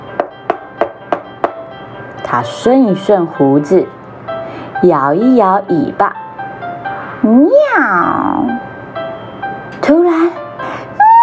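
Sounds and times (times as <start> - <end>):
impatient knocking on a wooden door: 0.2 - 1.6
speech: 2.3 - 4.0, 4.8 - 6.2, 7.2 - 8.7, 9.9 - 10.4.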